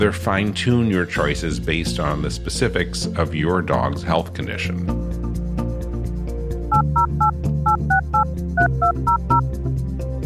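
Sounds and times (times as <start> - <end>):
speech: 0.0 - 5.0
soft low musical bed: 0.0 - 10.2
telephone touch-tone dialing beeps: 6.7 - 9.4.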